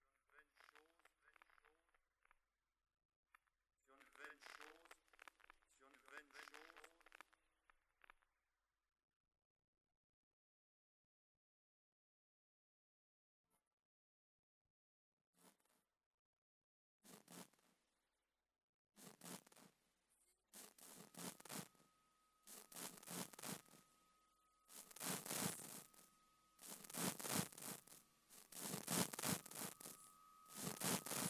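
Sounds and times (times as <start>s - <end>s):
noise: 4.0s - 7.3s, 19.0s - 19.7s, 20.5s - 31.2s.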